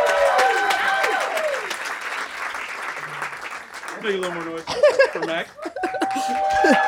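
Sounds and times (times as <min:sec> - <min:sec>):
people shouting and whooping: 0:00.0 - 0:01.7, 0:05.6 - 0:06.8
audience applause at a live music event: 0:00.0 - 0:06.8
laughter: 0:04.6 - 0:06.8.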